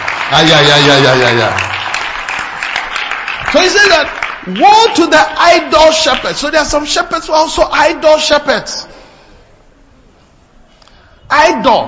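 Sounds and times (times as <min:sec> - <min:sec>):
audience clapping hands: 0:00.0 - 0:06.5
speech: 0:00.3 - 0:01.7, 0:03.5 - 0:08.9, 0:11.3 - 0:11.8.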